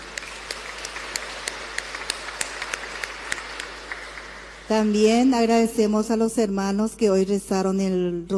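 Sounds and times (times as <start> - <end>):
audience applauding the children: 0.0 - 5.3
speech: 4.7 - 8.3.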